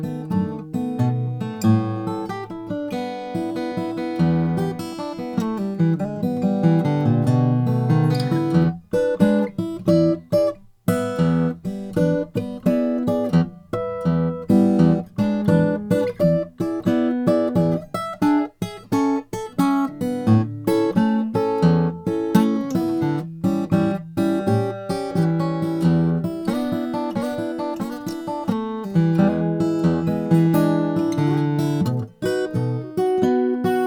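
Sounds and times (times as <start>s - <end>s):
parlor acoustic guitar with wider nut: 0.0s - 33.8s.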